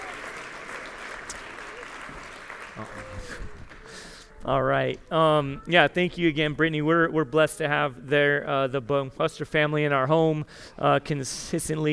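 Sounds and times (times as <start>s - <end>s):
church congregation clapping: 0.0s - 4.3s
speech: 2.8s - 3.6s, 4.4s - 11.9s.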